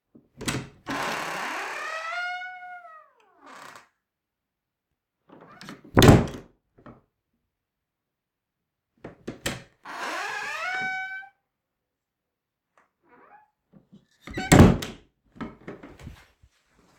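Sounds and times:
creaky door opening and closing: 0:00.4 - 0:04.0, 0:09.5 - 0:11.4, 0:14.2 - 0:15.0.

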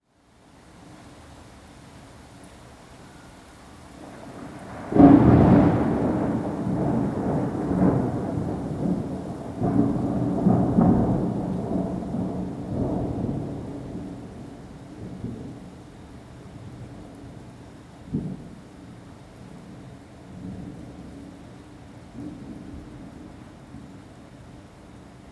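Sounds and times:
thunderclap: 0:04.1 - 0:15.6.

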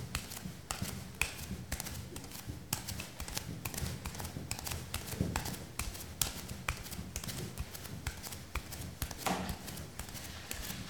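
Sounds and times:
barefoot footsteps on stone: 0:00.2 - 0:10.8.

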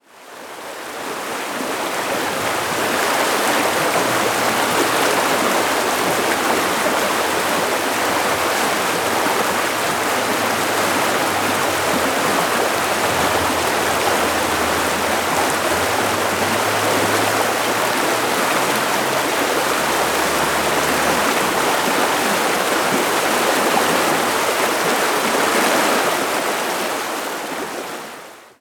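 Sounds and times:
rushing stream: 0:00.0 - 0:28.5.

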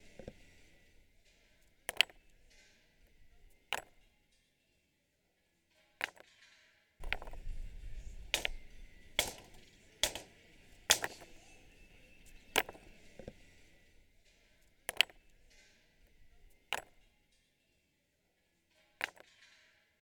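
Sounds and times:
rocks hitting other rocks: 0:00.0 - 0:04.0, 0:07.0 - 0:17.0.

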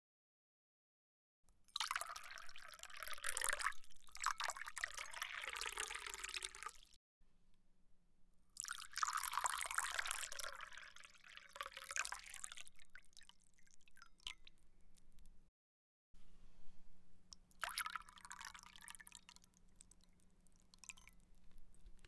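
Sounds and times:
water pouring into cup: 0:01.7 - 0:06.9, 0:08.6 - 0:15.1, 0:17.4 - 0:22.0.

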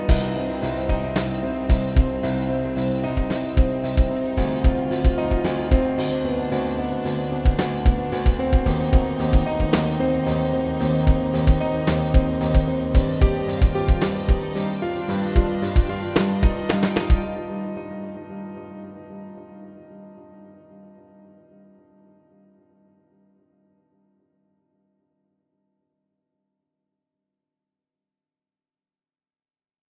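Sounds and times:
orchestral rock music: 0:00.1 - 0:17.6.

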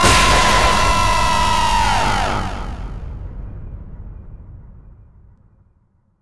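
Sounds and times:
jump scare sting: 0:00.0 - 0:03.2.

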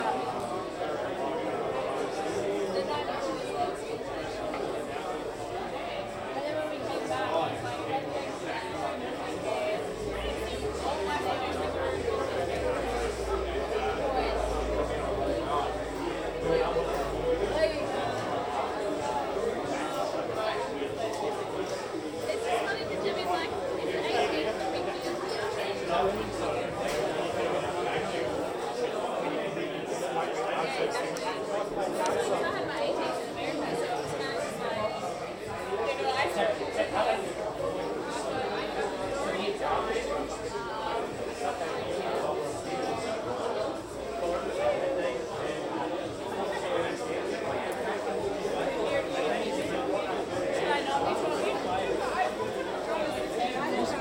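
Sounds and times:
general chatter in a bar: 0:00.0 - 0:53.9.

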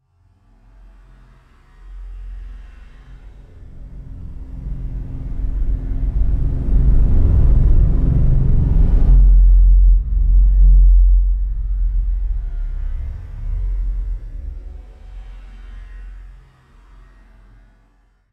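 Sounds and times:
long sci-fi spaceship flying whoosh: 0:04.0 - 0:15.3.

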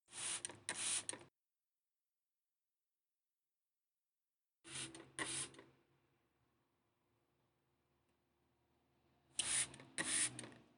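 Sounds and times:
spray: 0:00.1 - 0:01.2, 0:04.7 - 0:05.6, 0:09.4 - 0:10.5.

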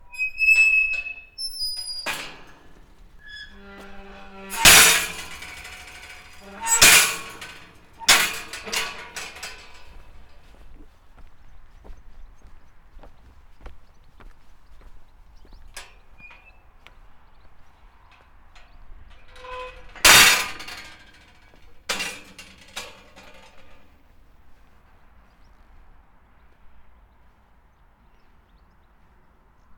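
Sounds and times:
creaky squeaky metal gate: 0:00.0 - 0:10.5, 0:15.8 - 0:16.9, 0:17.7 - 0:23.9.

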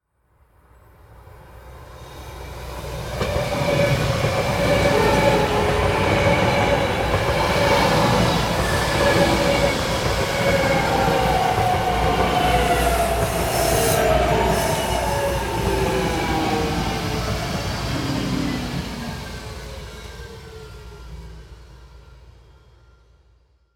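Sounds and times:
BART train in South Hayward California: 0:00.0 - 0:23.7.

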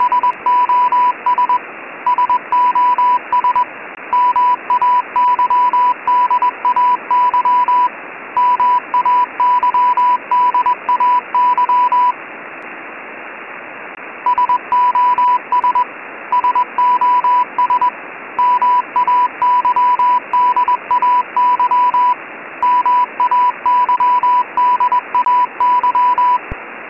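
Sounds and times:
SOS Mayday Morse code beeps at 988 Hz: 0:00.0 - 0:12.2, 0:14.3 - 0:26.6
background static: 0:00.0 - 0:26.8.

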